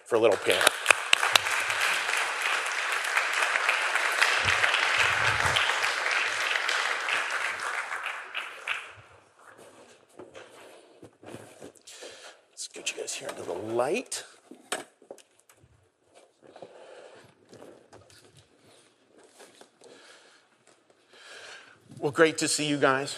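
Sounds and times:
crowd applauding: 0:00.0 - 0:09.3
speech: 0:00.1 - 0:00.9, 0:22.2 - 0:23.1.

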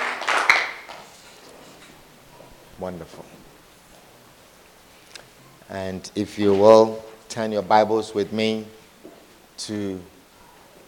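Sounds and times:
audience clapping hands: 0:00.0 - 0:01.3
speech: 0:02.8 - 0:03.5, 0:05.7 - 0:08.8, 0:09.6 - 0:10.1.

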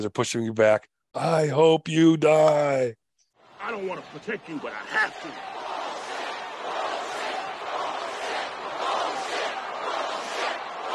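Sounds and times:
speech: 0:00.0 - 0:03.0, 0:03.6 - 0:05.6
crowd voicing displeasure: 0:03.4 - 0:10.9.

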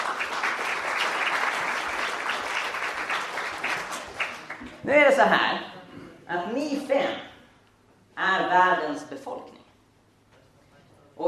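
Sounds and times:
audience clapping for volunteers: 0:00.0 - 0:04.9
speech: 0:04.8 - 0:05.7, 0:06.3 - 0:07.3, 0:08.2 - 0:09.6.

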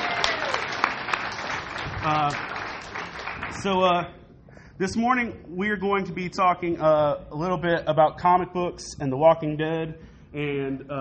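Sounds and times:
audience applause for volunteers: 0:00.0 - 0:03.7
speech: 0:02.0 - 0:02.5, 0:03.5 - 0:04.2, 0:04.8 - 0:10.9.

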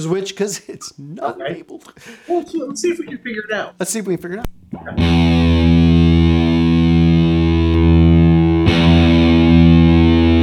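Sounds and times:
speech: 0:00.0 - 0:05.5
electric guitar chord with asymmetrical fuzz distortion: 0:05.0 - 0:10.4.

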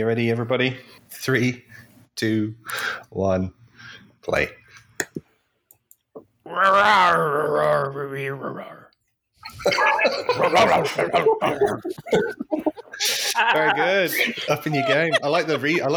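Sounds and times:
speech: 0:00.0 - 0:03.6, 0:04.2 - 0:04.6, 0:06.5 - 0:08.8, 0:09.6 - 0:15.9
human voice imitating an animal roar: 0:06.5 - 0:08.5
laughter: 0:09.4 - 0:15.9.

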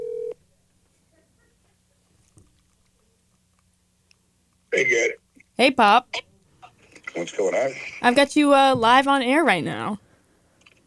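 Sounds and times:
telephone dialing tone as a call is placed live on a radio station: 0:00.0 - 0:00.4
faint low hum: 0:00.0 - 0:10.8
speech: 0:04.9 - 0:06.3, 0:07.2 - 0:10.0.

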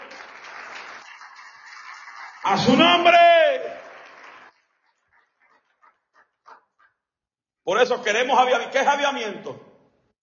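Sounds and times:
applause: 0:00.0 - 0:05.8
speech: 0:02.4 - 0:03.8, 0:07.7 - 0:09.7.

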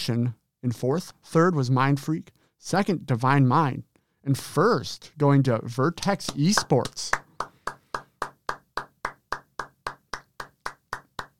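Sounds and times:
speech: 0:00.0 - 0:07.2
hand claps: 0:06.0 - 0:11.3.

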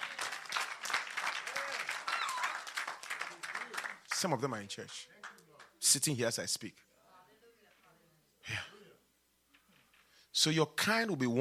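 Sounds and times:
audience clapping: 0:00.0 - 0:05.8
speech: 0:04.2 - 0:05.2, 0:05.9 - 0:06.9, 0:10.4 - 0:11.4.

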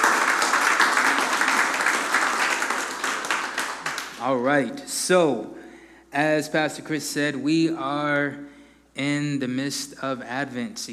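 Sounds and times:
audience applause: 0:00.0 - 0:04.2
speech: 0:04.2 - 0:10.9.

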